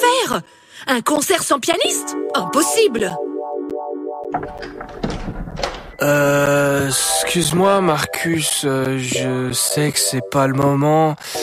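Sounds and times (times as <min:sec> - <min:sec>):
speech: 0:00.3 - 0:03.3, 0:04.3 - 0:11.4
clattering: 0:04.3 - 0:06.0
door banging shut: 0:04.3 - 0:06.3.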